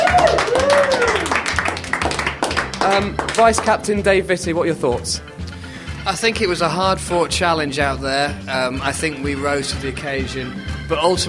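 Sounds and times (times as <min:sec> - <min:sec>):
excited voices cheering: 0:00.0 - 0:01.4
group applauding: 0:00.0 - 0:03.8
speech: 0:02.9 - 0:05.4, 0:06.0 - 0:11.2.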